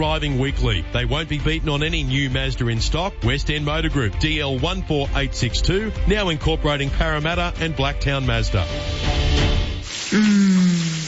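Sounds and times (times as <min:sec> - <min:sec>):
speech: 0:00.0 - 0:09.2
shower running: 0:09.4 - 0:11.0.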